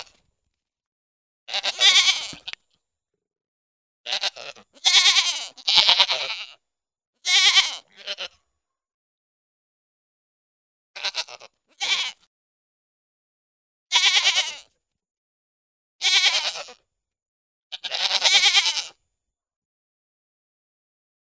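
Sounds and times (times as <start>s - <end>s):
goat giving wavering nasal bleats: 1.5s - 2.6s, 4.1s - 6.6s, 7.2s - 8.4s, 11.0s - 12.3s, 13.9s - 14.7s, 16.0s - 16.8s, 17.7s - 19.0s.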